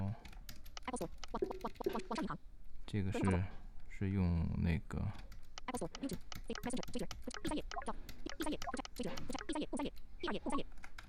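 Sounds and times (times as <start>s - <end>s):
typing on wireless computer keyboard: 0.2s - 2.3s, 5.2s - 9.6s
speech: 0.9s - 10.9s.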